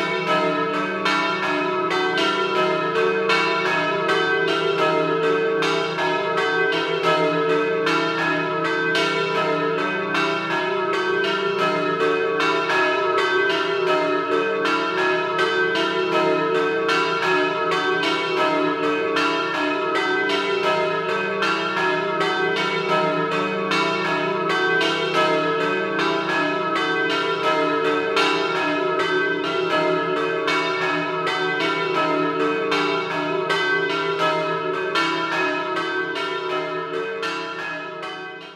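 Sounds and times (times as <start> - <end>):
church bells ringing a doppio in Rive d'Arcano: 0.0 - 38.5.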